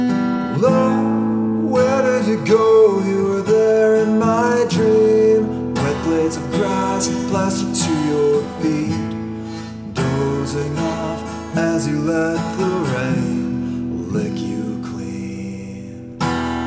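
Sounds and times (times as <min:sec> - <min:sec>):
voice with large reverb: 0:00.1 - 0:16.6.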